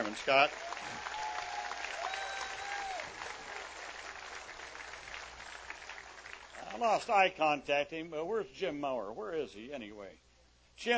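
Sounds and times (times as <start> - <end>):
round of applause: 0.0 - 7.1
speech: 0.1 - 1.1, 6.7 - 10.2, 10.8 - 10.9.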